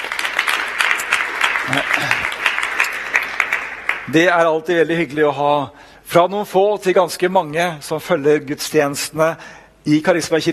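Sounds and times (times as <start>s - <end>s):
audience applause: 0.0s - 4.2s
speech: 1.7s - 2.4s, 4.1s - 10.5s.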